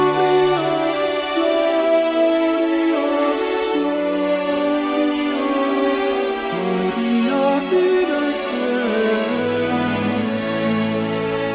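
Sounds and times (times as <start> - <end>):
alto voice singing a motet: 0.0 - 11.5.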